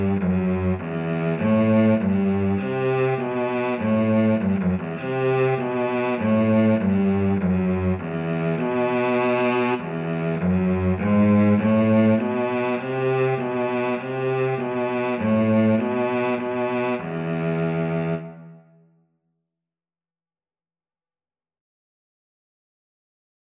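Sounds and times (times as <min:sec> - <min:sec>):
viola playing a minuet: 0:00.0 - 0:18.8
cello playing a minuet: 0:00.0 - 0:18.9.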